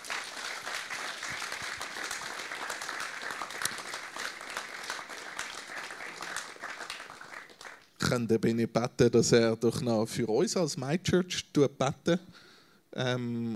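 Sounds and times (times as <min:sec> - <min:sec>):
audience applause: 0:00.0 - 0:07.9
speech: 0:08.1 - 0:13.5.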